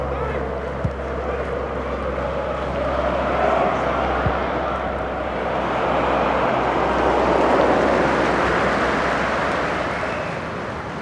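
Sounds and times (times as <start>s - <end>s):
stadium crowd cheering: 0.0s - 11.0s.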